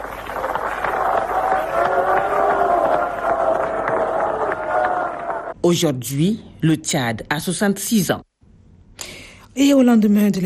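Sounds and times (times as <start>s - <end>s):
large crowd cheering at Chad's midnight independence proclamation: 0.0s - 5.6s
speech: 5.6s - 8.3s, 9.6s - 10.4s.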